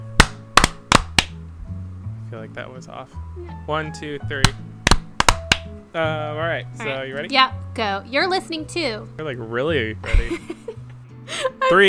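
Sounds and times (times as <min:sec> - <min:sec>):
hands clapping: 0:00.2 - 0:01.4, 0:04.4 - 0:05.7
speech: 0:02.3 - 0:04.8, 0:05.9 - 0:11.8
laughter: 0:10.0 - 0:11.8.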